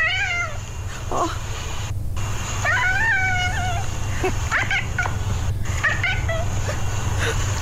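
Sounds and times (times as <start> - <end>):
cat making warbling speech-like meows: 0.0 - 0.6, 2.6 - 3.9, 4.5 - 5.1, 5.7 - 6.6
steady low hum: 0.0 - 7.6.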